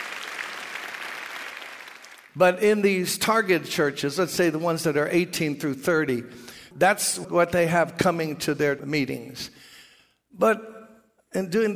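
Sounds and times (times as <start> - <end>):
audience clapping: 0.0 - 2.4
speech: 2.4 - 9.7, 10.4 - 11.7.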